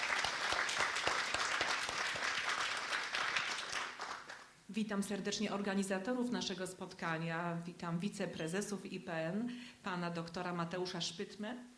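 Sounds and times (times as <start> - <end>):
audience applause: 0.0 - 4.5
speech: 4.8 - 11.7.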